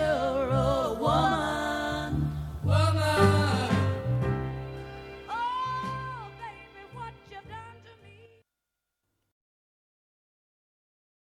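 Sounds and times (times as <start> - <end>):
soul music: 0.0 - 8.4.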